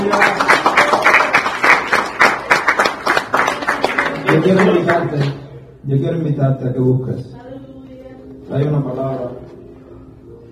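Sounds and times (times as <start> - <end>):
audience applauding: 0.0 - 5.5
speech: 4.4 - 7.4, 8.5 - 9.2.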